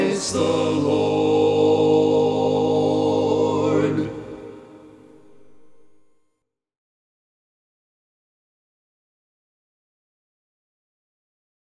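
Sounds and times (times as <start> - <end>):
baritone singing carol: 0.0 - 4.6.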